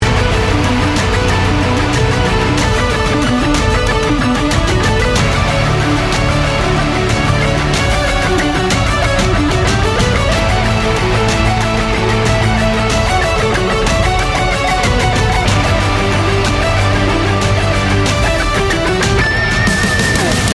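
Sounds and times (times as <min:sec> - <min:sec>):
instrumental music: 0:00.0 - 0:20.5.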